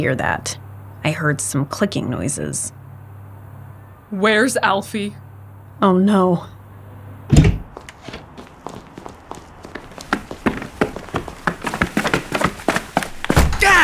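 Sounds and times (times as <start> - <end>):
speech: 0.0 - 2.8, 4.1 - 5.2, 5.8 - 6.6
door banging open: 7.3 - 7.7, 13.3 - 13.8
hurried footsteps: 7.3 - 13.8.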